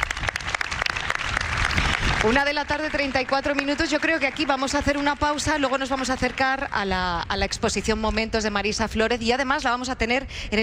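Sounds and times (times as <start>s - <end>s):
audience applause: 0.0s - 6.8s
speech: 2.2s - 10.6s.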